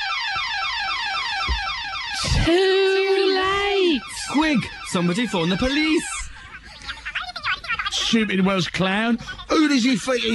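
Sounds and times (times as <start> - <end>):
burglar alarm going off: 0.0 - 6.5
speech: 2.4 - 2.7, 4.0 - 6.2, 8.1 - 10.3.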